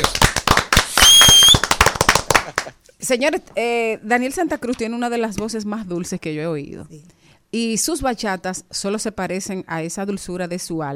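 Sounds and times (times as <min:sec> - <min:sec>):
applause: 0:00.0 - 0:02.8
high whistle: 0:01.0 - 0:01.7
speech: 0:03.0 - 0:10.9.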